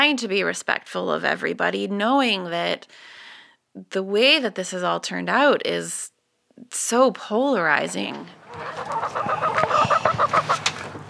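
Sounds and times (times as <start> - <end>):
speech: 0.0 - 10.7
chickens clucking: 7.7 - 11.0.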